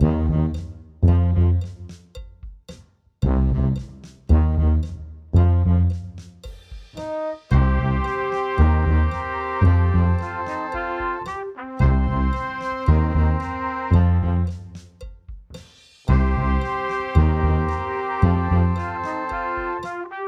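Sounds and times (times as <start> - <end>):
loud heavy metal tuba: 0.0 - 1.9, 3.2 - 6.2, 7.0 - 14.8, 16.1 - 20.2.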